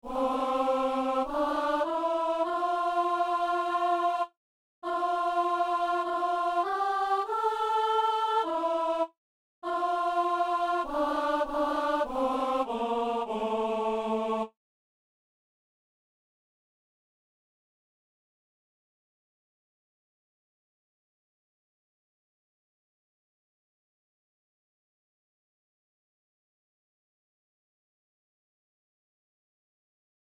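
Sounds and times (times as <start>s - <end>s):
alto voice in four-voice choir: 0.0s - 14.6s.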